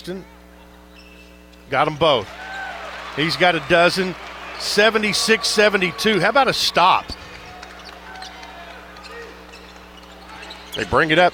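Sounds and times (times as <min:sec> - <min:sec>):
speech: 0:00.0 - 0:00.4, 0:01.7 - 0:02.4, 0:03.2 - 0:07.2, 0:10.8 - 0:11.3
basketball dribbled on a court during a game: 0:06.9 - 0:11.3.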